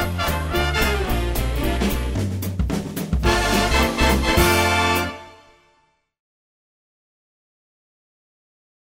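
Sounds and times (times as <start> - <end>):
standard jazz music: 0.0 - 6.0.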